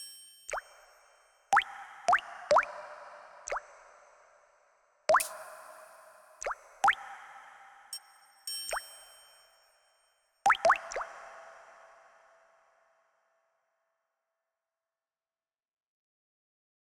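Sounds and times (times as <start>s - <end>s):
water triangle with reverb: 1.6s - 9.5s, 10.5s - 12.8s.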